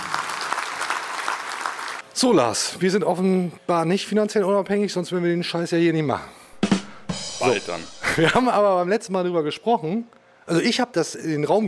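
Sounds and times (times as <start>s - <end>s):
audience applause: 0.0s - 2.0s
speech: 2.2s - 6.4s, 7.4s - 11.6s
laughter: 7.9s - 8.6s.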